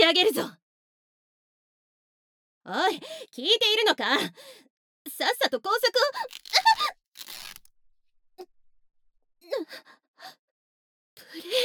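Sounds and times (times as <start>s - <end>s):
speech: 0.2s - 0.6s, 2.6s - 7.0s, 9.5s - 10.4s
clothing of a princess and knight commander being torn: 6.2s - 7.8s.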